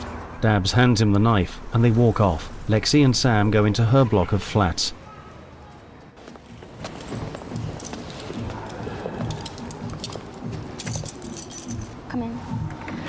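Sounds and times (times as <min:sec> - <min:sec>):
speech: 0:00.4 - 0:05.0
keys jangling in the lock of a front door in a block of flats: 0:06.9 - 0:12.0.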